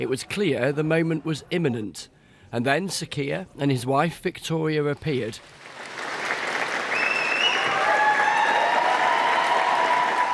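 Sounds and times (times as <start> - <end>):
speech: 0.0 - 5.7
staff applauding in the street: 5.4 - 10.3.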